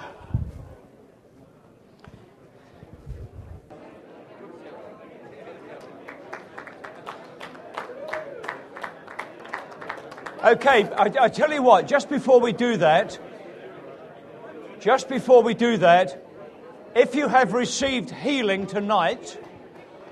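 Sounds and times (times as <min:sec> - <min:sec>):
group clapping as people get healed: 0:05.7 - 0:11.4
speech: 0:10.4 - 0:13.2, 0:14.8 - 0:16.2, 0:17.0 - 0:19.4.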